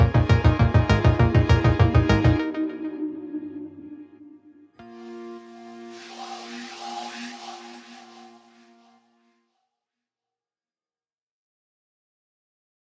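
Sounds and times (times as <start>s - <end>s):
synthesizers: 0.0s - 9.3s.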